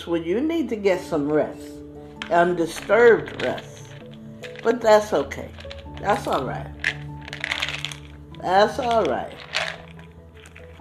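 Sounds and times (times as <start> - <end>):
speech: 0.0 - 3.8, 4.6 - 6.8, 8.4 - 9.4
pills being doled out: 2.1 - 10.7.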